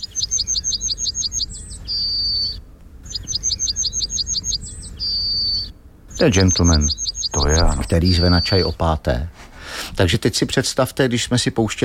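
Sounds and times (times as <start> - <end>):
British yellowhammer singing: 0.0 - 9.0
speech: 6.2 - 9.4, 10.0 - 11.8.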